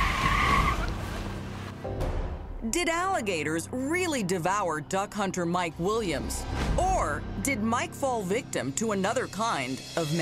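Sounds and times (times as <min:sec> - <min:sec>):
car tyres squealing: 0:00.0 - 0:01.3
speech: 0:02.6 - 0:10.2.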